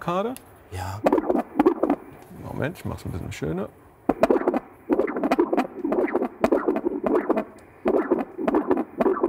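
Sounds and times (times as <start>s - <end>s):
speech: 0.0s - 1.2s, 2.5s - 3.8s
dog heartbeat on ultrasound Doppler: 1.0s - 2.1s, 4.1s - 9.2s.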